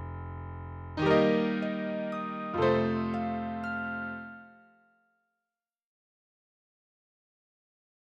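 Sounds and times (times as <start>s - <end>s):
piano, harp and orchestra dialogue: 1.0s - 4.5s.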